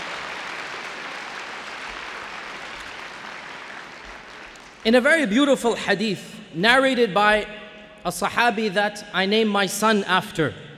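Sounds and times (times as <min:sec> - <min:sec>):
audience applause: 0:00.0 - 0:04.8
speech: 0:04.8 - 0:10.7.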